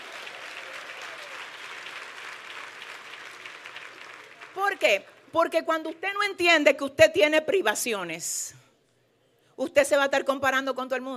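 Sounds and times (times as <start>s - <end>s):
crowd applauding: 0.0s - 5.4s
speech: 4.6s - 8.6s, 9.6s - 11.1s.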